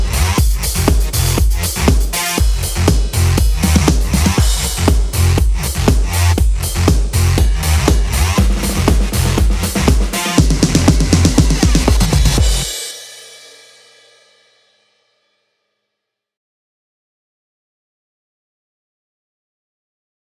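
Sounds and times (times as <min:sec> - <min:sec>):
drummer playing a phat drum kit: 0:00.0 - 0:14.3.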